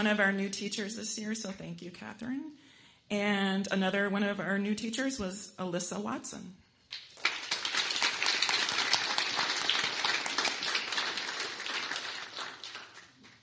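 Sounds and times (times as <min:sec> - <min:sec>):
speech: 0:00.0 - 0:07.0
crowd applause: 0:07.1 - 0:13.4.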